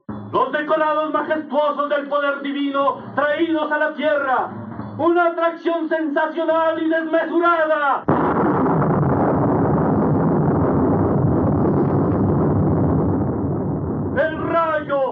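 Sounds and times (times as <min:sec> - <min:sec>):
speech: 0:00.3 - 0:08.4
thunder clap: 0:08.1 - 0:14.9.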